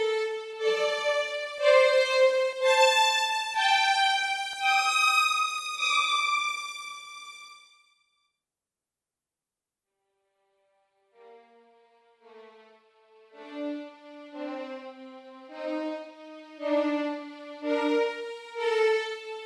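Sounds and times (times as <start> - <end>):
first violins playing legato close: 0.0 - 7.6, 13.4 - 19.4.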